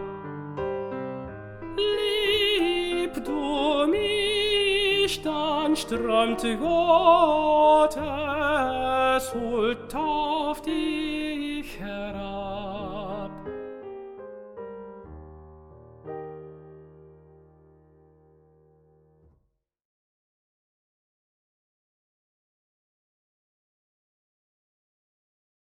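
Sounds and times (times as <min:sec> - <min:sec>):
tenor singing: 0:01.7 - 0:13.5.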